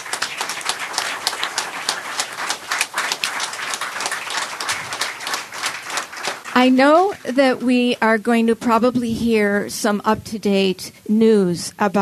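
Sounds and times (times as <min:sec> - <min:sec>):
crowd applause: 0:00.0 - 0:07.1
speech: 0:06.6 - 0:12.0.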